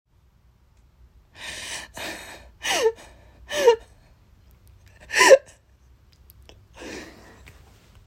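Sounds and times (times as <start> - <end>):
woman crying: 2.0 - 3.9, 5.0 - 5.6.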